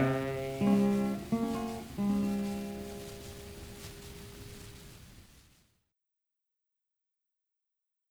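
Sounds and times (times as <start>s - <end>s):
American folk ballad: 0.0s - 5.0s.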